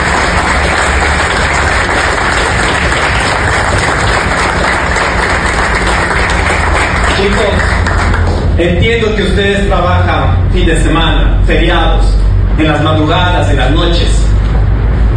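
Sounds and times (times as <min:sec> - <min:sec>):
crowd applauding: 0:00.0 - 0:08.6
speech: 0:08.6 - 0:14.2.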